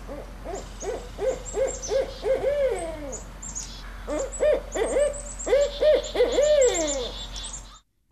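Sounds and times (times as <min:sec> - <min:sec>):
Barred Owl hooting: 0:00.0 - 0:07.8.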